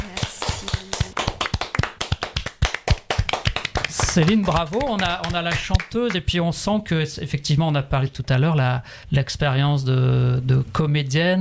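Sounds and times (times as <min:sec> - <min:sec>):
applause from a small group: 0:00.0 - 0:06.3
speech: 0:04.2 - 0:11.3.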